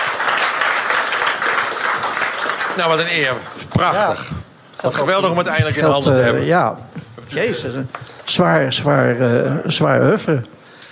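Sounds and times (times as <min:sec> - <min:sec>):
audience applause: 0:00.0 - 0:03.6
speech: 0:02.8 - 0:10.6.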